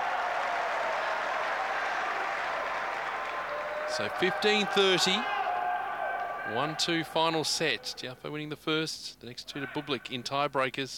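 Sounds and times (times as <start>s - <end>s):
tennis crowd cheering and applauding: 0.0s - 7.0s
speech: 3.9s - 5.4s, 6.5s - 10.9s.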